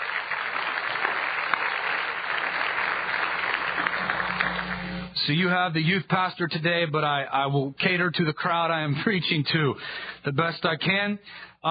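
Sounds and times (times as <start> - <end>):
crowd clapping: 0.0 - 5.1
speech: 5.2 - 11.6.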